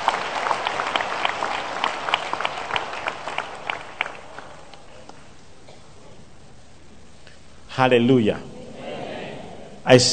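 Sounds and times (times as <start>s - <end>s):
audience applauding: 0.0s - 5.2s
speech: 7.8s - 8.5s, 9.8s - 10.1s.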